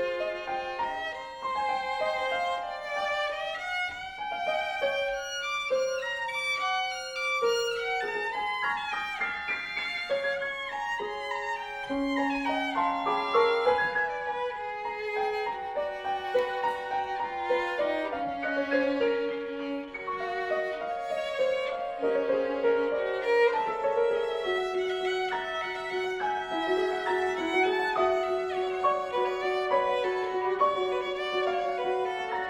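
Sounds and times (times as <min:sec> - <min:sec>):
violin and piano sonata: 0:00.0 - 0:32.4.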